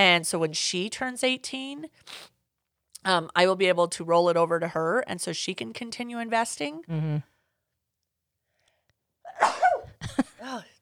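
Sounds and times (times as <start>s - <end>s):
speech: 0.0s - 2.3s, 3.0s - 7.3s
sneeze from allergies: 9.3s - 10.0s.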